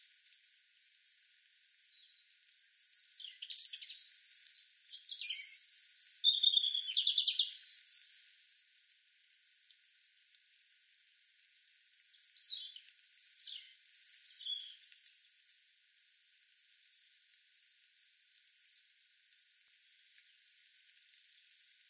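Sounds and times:
European robin Erithacus rubecula singing high tinkling phrases: 1.9s - 8.3s, 11.8s - 14.8s.

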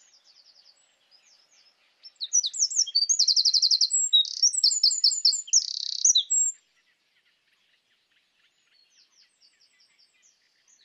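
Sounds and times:
Eurasian wren song: 0.0s - 6.6s.

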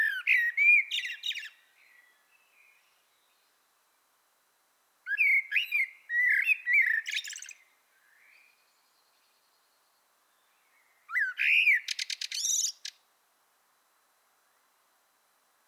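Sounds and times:
Common blackbird Turdus merula singing: 0.0s - 3.5s, 5.1s - 9.3s, 10.4s - 13.0s.

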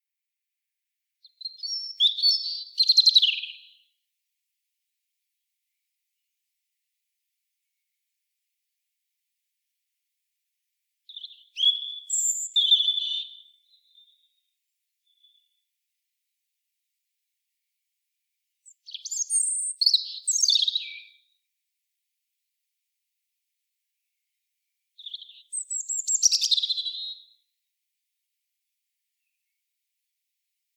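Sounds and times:
European robin singing: 1.2s - 3.9s, 11.1s - 15.7s, 18.6s - 21.4s, 25.0s - 27.4s.

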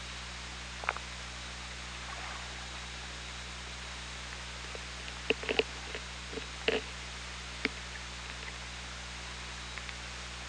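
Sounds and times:
steady low hum and hiss: 0.0s - 10.4s
orca pulsed calls underwater: 1.6s - 9.7s.

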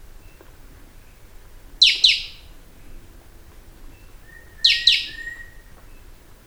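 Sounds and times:
bird calls: 0.2s - 3.1s, 3.8s - 6.2s
faint thin whistle: 4.2s - 5.7s.

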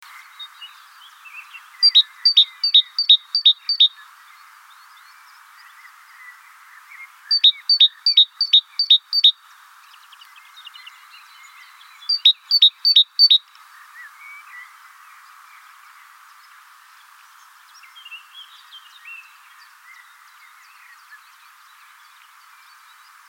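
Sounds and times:
great tit calling two-note phrases: 1.8s - 4.0s, 7.3s - 9.3s, 12.0s - 13.4s.

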